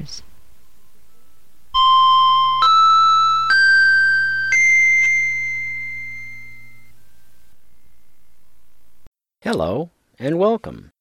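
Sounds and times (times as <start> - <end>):
speech: 0.0 - 0.3, 9.5 - 10.9
low hum: 0.0 - 9.1
opening chime tones: 1.7 - 7.6.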